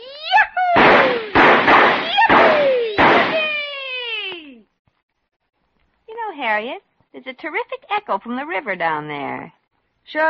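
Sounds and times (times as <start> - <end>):
fireworks being shot off: 0.7 - 4.3
speech: 6.5 - 10.2.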